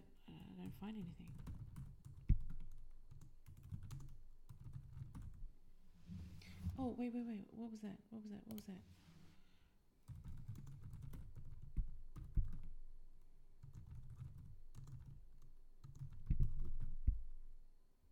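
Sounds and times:
fingers typing on a computer keyboard: 0:00.3 - 0:05.5, 0:10.1 - 0:12.8, 0:13.6 - 0:17.1
speech: 0:00.6 - 0:01.5, 0:06.8 - 0:09.1.

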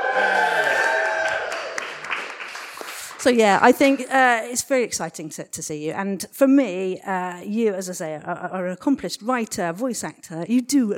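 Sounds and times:
audience cheering and applause: 0:00.0 - 0:03.3
speech: 0:03.2 - 0:10.9.

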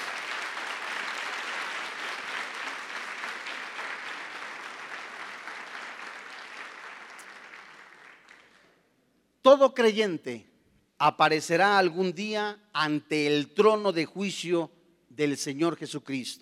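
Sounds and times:
audience applause: 0:00.0 - 0:08.7
speech: 0:09.4 - 0:16.4.

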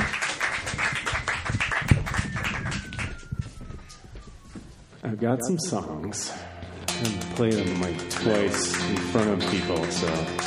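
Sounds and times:
audience applause: 0:00.0 - 0:03.5, 0:08.0 - 0:10.4
speech: 0:05.0 - 0:10.4.

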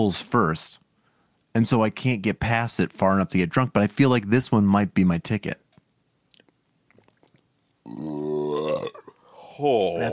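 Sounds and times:
speech: 0:00.0 - 0:00.8, 0:01.6 - 0:05.6, 0:07.9 - 0:09.0, 0:09.6 - 0:10.1
quiet clicks and mouth sounds: 0:06.3 - 0:07.5
long loud low-pitched burp: 0:07.8 - 0:09.2.

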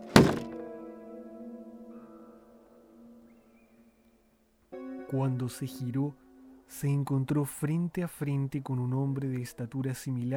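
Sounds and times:
front door closing: 0:00.0 - 0:00.6
speech: 0:05.1 - 0:10.3.

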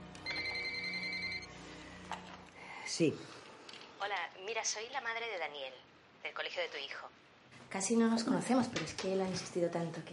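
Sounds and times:
cordless telephone ringing: 0:00.2 - 0:01.5
speech: 0:02.9 - 0:03.4, 0:04.0 - 0:10.1.

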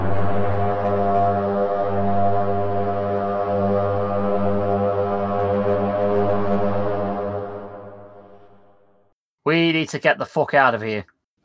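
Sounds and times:
deep horn blowing: 0:00.0 - 0:09.0
speech: 0:09.6 - 0:11.1.

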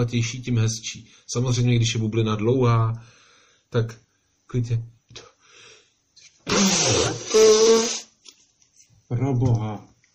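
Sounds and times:
speech: 0:00.0 - 0:05.3, 0:09.1 - 0:09.9
nose blowing: 0:06.4 - 0:08.2.

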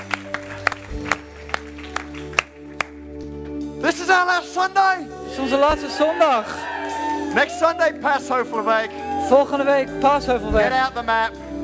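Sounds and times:
audience applause: 0:00.0 - 0:03.0, 0:05.9 - 0:08.0
speech: 0:03.8 - 0:06.7, 0:07.3 - 0:11.5.

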